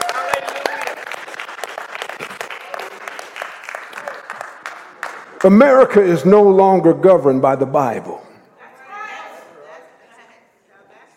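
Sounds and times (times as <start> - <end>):
audience applause: 0.0 - 6.0
speech: 5.4 - 8.2.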